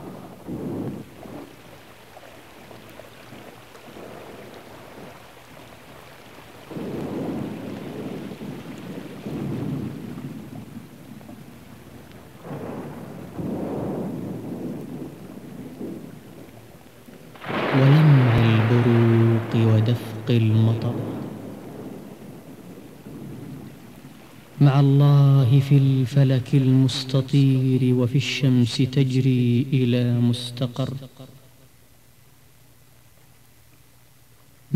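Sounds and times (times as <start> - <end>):
deep rolling thunder: 0.0 - 25.8
heavy rain: 0.0 - 31.8
speech: 20.3 - 20.9, 24.6 - 31.4.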